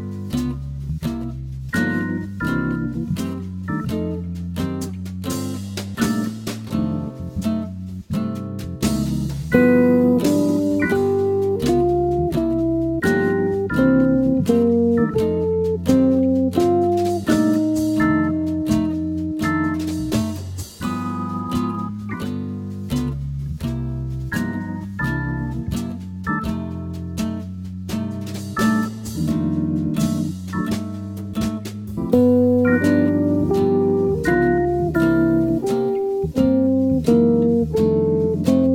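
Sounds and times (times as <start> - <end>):
jazz guitar playing ii V7 I major chord progression: 0.0 - 38.7.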